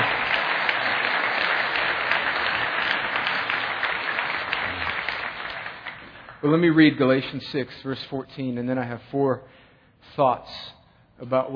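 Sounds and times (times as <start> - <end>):
audience hand clapping: 0.0 - 7.1
speech: 6.4 - 11.5.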